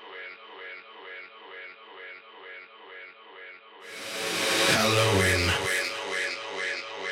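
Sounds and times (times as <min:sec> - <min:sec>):
Halloween a cappella singing: 0:03.9 - 0:07.0.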